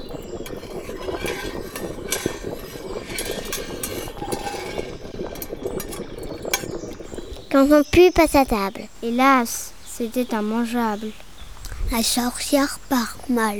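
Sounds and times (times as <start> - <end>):
stirring a stew in a pot: 0.0 - 7.6
speech: 7.5 - 11.2, 11.9 - 13.5.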